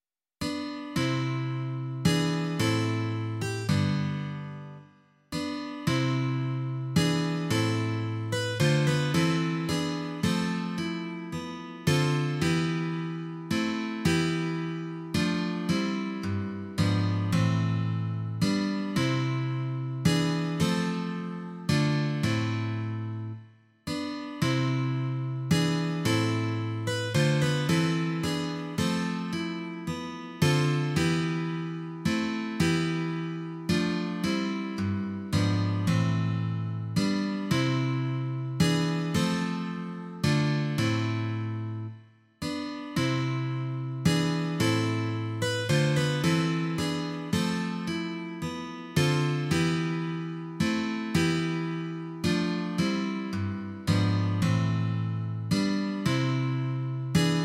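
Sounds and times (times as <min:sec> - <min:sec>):
twelve-string guitar: 0:00.4 - 0:04.8, 0:05.4 - 0:57.4.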